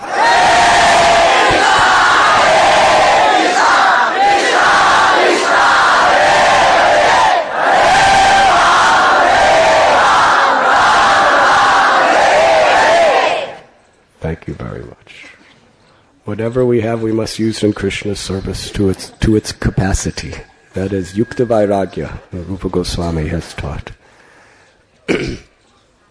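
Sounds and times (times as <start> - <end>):
crowd of about 2,000 devotees chanting in unison: 0.0 - 13.8
speech: 16.3 - 24.0, 25.1 - 25.4.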